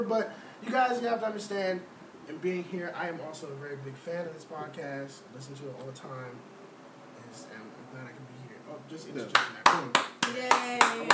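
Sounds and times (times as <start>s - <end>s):
speech: 0.0s - 6.6s, 7.3s - 11.1s
hand clapping into the microphone: 9.3s - 11.1s.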